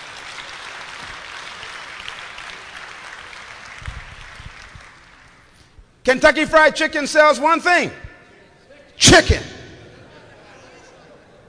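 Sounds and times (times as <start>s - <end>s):
audience clapping hands: 0.0s - 5.6s
speech: 6.0s - 8.0s, 9.0s - 9.5s
laughter: 9.7s - 11.4s.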